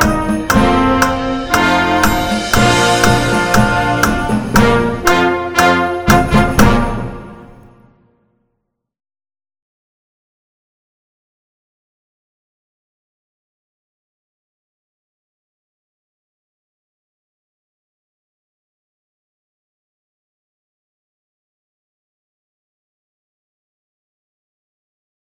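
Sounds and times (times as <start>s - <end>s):
metronome clicks: 0.0s - 6.8s
practice music track: 0.0s - 7.8s.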